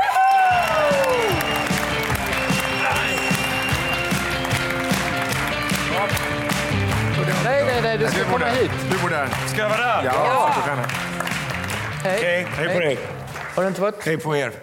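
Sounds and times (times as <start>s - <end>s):
voices cheering: 0.0s - 4.7s, 9.7s - 10.9s
audience applause: 0.0s - 14.4s
speech: 7.9s - 11.2s, 12.0s - 14.6s.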